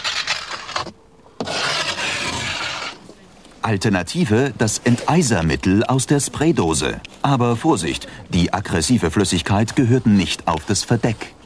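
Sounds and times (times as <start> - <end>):
ice scraper scraping a glass window: 0.0 - 3.0
speech: 3.6 - 11.4.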